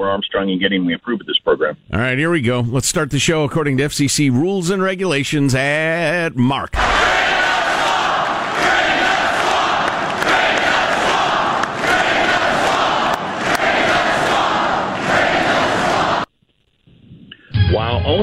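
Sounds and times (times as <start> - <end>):
speech: 0.0 - 7.4
large rally crowd cheering and roaring: 6.8 - 16.3.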